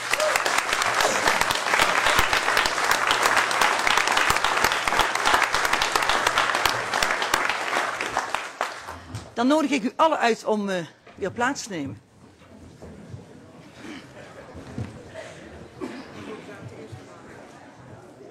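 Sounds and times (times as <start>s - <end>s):
audience applause: 0.0s - 9.1s
speech: 9.4s - 12.0s.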